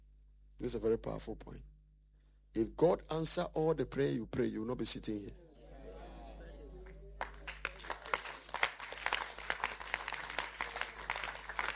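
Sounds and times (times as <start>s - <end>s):
speech: 0.6s - 1.8s, 2.6s - 5.4s
audience clapping: 6.8s - 11.7s.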